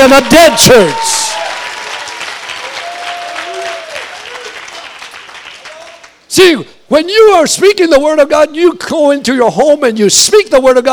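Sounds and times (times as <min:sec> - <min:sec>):
speech: 0:00.1 - 0:01.5, 0:06.4 - 0:10.9
audience clapping: 0:00.2 - 0:06.2.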